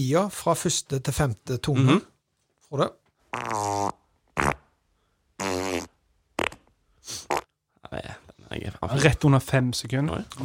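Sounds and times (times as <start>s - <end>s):
speech: 0.0s - 2.1s, 2.7s - 3.7s, 8.6s - 10.4s
fart: 3.3s - 4.7s, 5.4s - 7.5s.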